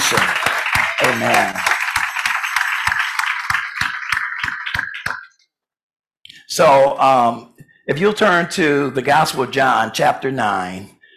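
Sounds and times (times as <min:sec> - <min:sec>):
audience clapping: 0:00.0 - 0:05.4
speech: 0:01.2 - 0:01.7, 0:06.6 - 0:11.0.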